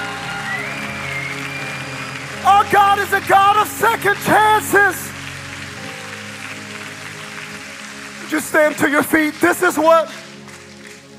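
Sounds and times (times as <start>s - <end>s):
shouts of praise: 0.0s - 5.1s
large audience clapping: 0.0s - 11.1s
speech: 3.0s - 5.1s, 8.3s - 10.2s.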